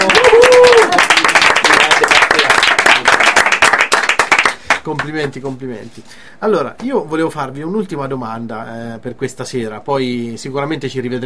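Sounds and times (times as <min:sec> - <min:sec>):
applause: 0:00.0 - 0:05.4
speech: 0:04.9 - 0:11.2.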